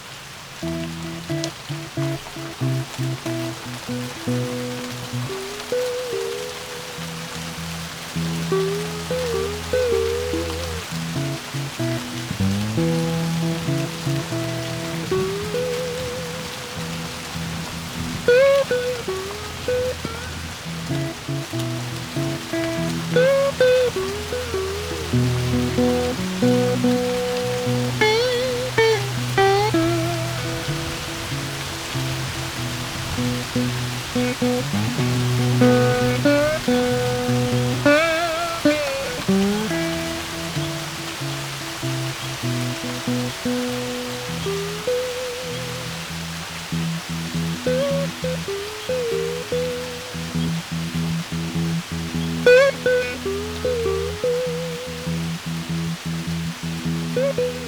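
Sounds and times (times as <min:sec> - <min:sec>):
light rain: 0:00.0 - 0:57.6.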